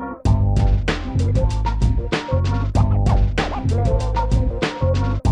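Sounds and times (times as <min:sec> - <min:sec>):
96 BPM hip hop beat: 0:00.3 - 0:05.2.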